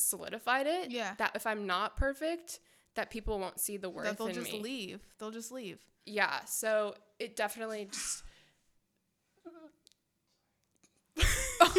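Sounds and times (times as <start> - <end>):
speech: 0.1 - 8.3
man sneezing: 7.7 - 8.3.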